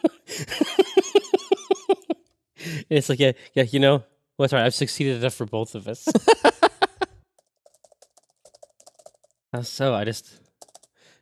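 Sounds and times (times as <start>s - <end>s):
laughter: 0.0s - 2.2s, 6.1s - 7.1s
speech: 2.9s - 6.6s, 9.5s - 10.4s
typing on a computer keyboard: 7.3s - 9.4s, 10.5s - 11.0s.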